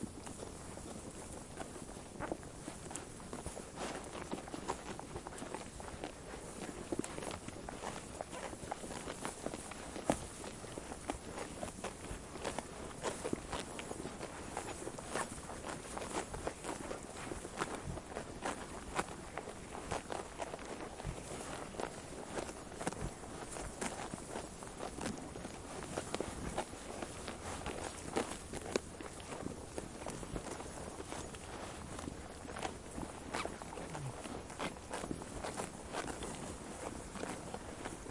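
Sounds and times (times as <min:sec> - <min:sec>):
sheep munching grass: 0:00.0 - 0:38.0.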